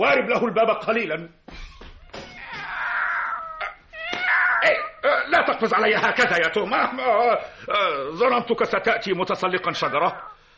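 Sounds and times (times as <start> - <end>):
speech: 0.0 - 1.6, 4.6 - 10.3
voice imitating cat meows and yowls: 2.2 - 5.0.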